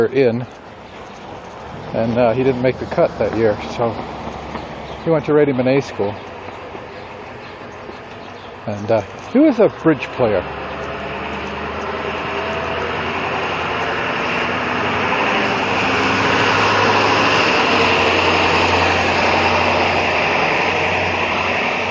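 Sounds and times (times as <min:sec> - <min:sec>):
speech: 0:00.0 - 0:00.6, 0:01.9 - 0:04.2, 0:05.0 - 0:06.3, 0:08.7 - 0:10.6
pickup truck noise: 0:00.0 - 0:21.8.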